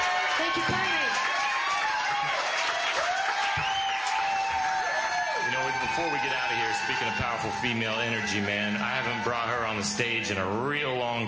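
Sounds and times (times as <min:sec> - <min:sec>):
whoops and cheers: 0:00.0 - 0:10.4
large audience applause: 0:00.0 - 0:11.2
speech: 0:00.4 - 0:00.8, 0:05.9 - 0:11.2.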